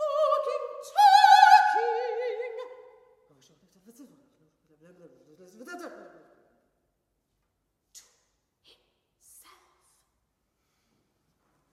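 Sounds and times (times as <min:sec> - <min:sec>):
solo soprano singing: 0:00.0 - 0:02.9.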